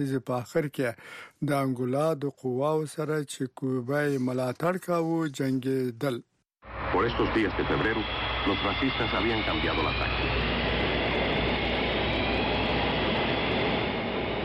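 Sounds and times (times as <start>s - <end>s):
speech: 0.0s - 10.4s
jet aircraft engine of a Cuban military plane running: 6.6s - 14.4s.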